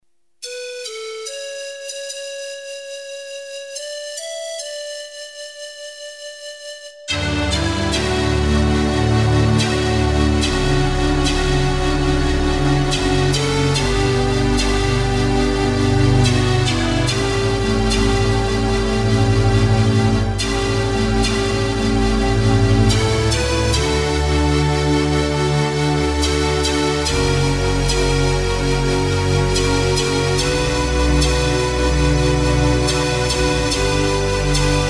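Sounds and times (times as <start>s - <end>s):
instrumental music: 0.4s - 34.8s.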